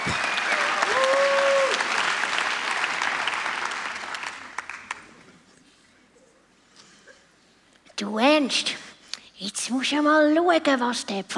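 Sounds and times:
audience applause: 0:00.0 - 0:05.2
speech: 0:08.4 - 0:08.8, 0:09.5 - 0:11.3.

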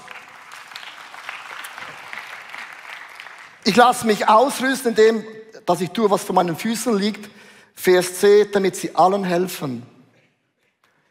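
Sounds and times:
audience applause: 0:00.0 - 0:03.7
speech: 0:03.7 - 0:09.9.

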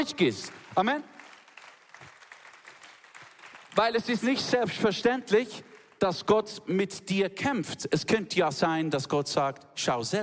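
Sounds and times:
speech: 0:00.0 - 0:01.2, 0:03.8 - 0:10.2
crowd clapping: 0:00.0 - 0:06.4.

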